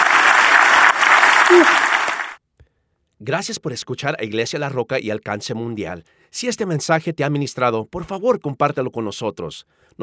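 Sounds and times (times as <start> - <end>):
audience applause: 0.0 - 2.4
speech: 1.5 - 1.9, 3.2 - 10.0.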